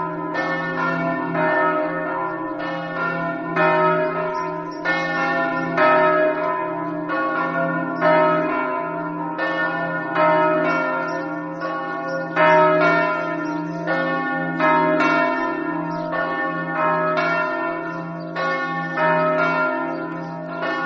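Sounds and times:
bells ringing in Ragogna: 0:00.0 - 0:20.8.

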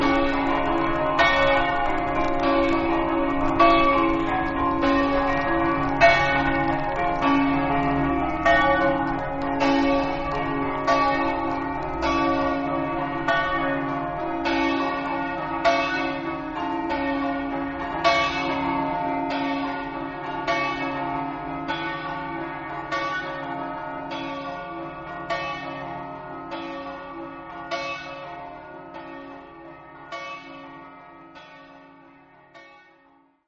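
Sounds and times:
bells: 0:00.0 - 0:33.4.

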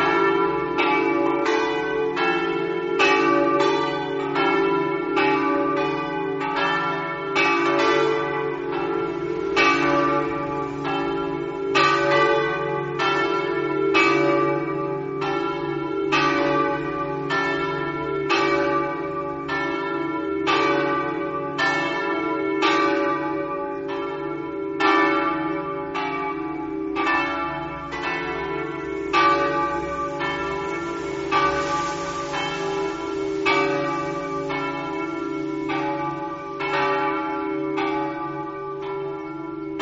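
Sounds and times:
church bells ringing in Sevegliano: 0:00.0 - 0:39.8.

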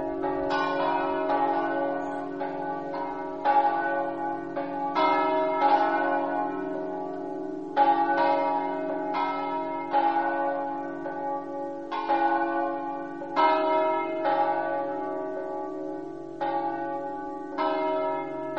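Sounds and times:
bells ringing: 0:00.0 - 0:18.5.

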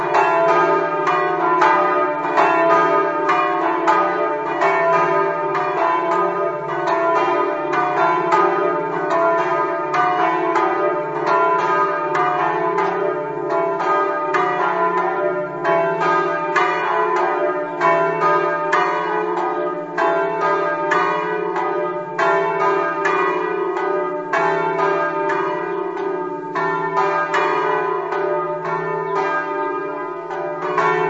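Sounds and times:
bells in Cavazzo: 0:00.0 - 0:31.0.

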